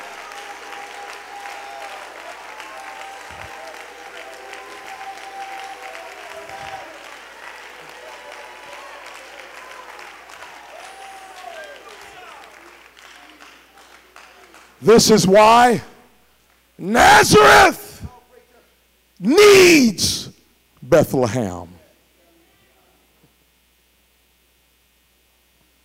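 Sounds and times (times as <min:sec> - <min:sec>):
voices cheering and calling out: 0:00.0 - 0:12.7, 0:16.8 - 0:18.1
crowd clapping: 0:00.0 - 0:15.4
speech: 0:14.8 - 0:15.9, 0:17.2 - 0:17.8, 0:19.2 - 0:20.2, 0:20.9 - 0:21.7.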